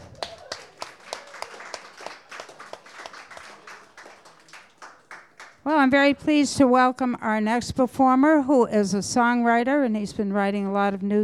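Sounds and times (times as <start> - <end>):
audience applause for a performer at a live show: 0.0 - 5.7
speech: 5.7 - 11.2.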